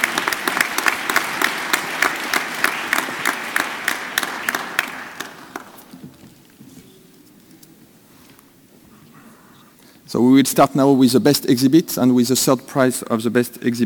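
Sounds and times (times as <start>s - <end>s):
audience applause: 0.0s - 6.2s
speech: 10.1s - 13.8s.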